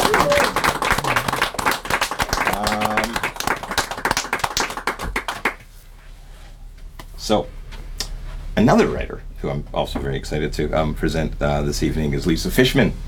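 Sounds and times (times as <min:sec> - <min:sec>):
audience round of applause: 0:00.0 - 0:05.6
speech: 0:07.3 - 0:07.6, 0:08.6 - 0:13.0.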